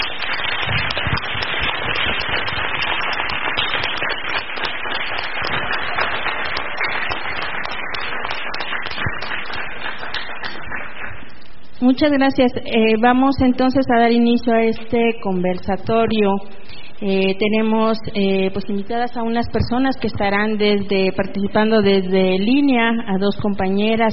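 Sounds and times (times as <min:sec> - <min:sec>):
audience applause: 0:00.0 - 0:11.4
speech: 0:11.8 - 0:24.1.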